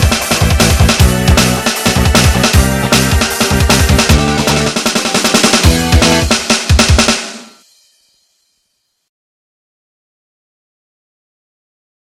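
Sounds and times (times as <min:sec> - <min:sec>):
game battle music: 0:00.0 - 0:07.6.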